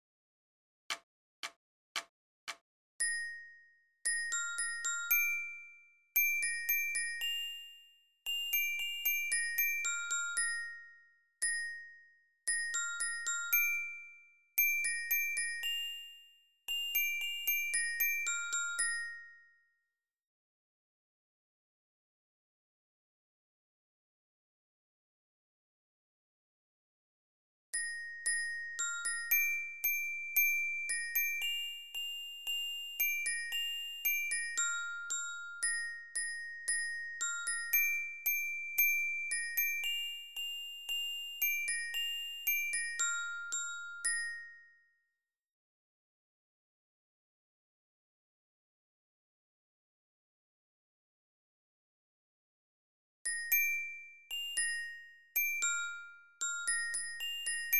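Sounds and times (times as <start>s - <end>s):
lyra glockenspiel of a Spielmannszug marching band: 3.0s - 19.9s, 27.8s - 45.2s, 53.3s - 57.7s.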